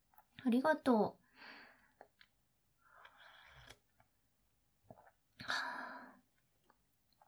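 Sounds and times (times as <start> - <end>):
speech: 0.4 - 1.2
person sipping black tea: 2.0 - 4.1, 4.8 - 5.2.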